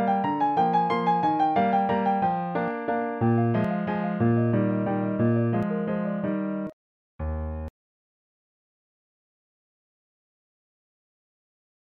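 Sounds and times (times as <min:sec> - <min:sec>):
piano waltz: 0:00.0 - 0:07.7.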